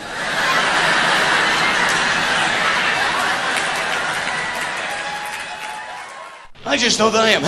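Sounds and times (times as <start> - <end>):
chuckles and chatter: 0.0 - 5.3
audience applauding to welcome a performer on stage: 0.0 - 6.5
speech: 6.7 - 7.4.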